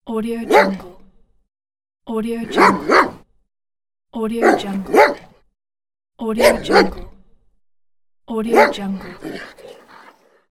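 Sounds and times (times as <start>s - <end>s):
dog barking: 0.5s - 0.9s, 2.5s - 3.3s, 4.4s - 5.4s, 6.4s - 7.1s, 8.5s - 9.8s.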